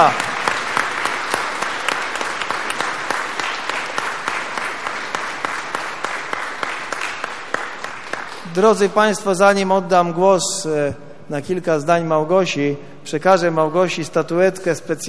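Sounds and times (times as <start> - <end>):
speech: 0.0 - 0.3, 8.5 - 15.0
audience applause: 0.0 - 8.5.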